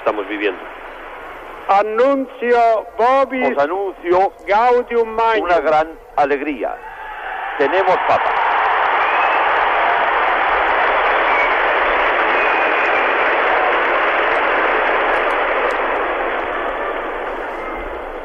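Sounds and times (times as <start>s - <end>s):
speech: 0.1s - 0.9s, 1.6s - 6.9s, 7.6s - 8.4s
applause of 150,000 people in the Plaza de San Pedro: 6.9s - 18.2s.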